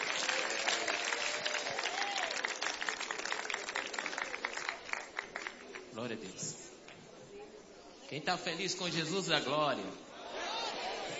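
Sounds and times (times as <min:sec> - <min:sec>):
audience applauding for Christ: 0:00.0 - 0:05.9
speech: 0:06.0 - 0:06.7, 0:08.1 - 0:10.1.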